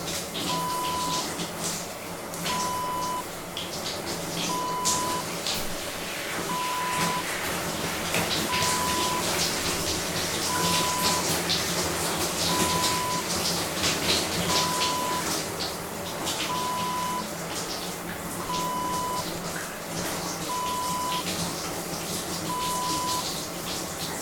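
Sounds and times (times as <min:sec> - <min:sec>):
person taking a shower: 0:00.0 - 0:24.2.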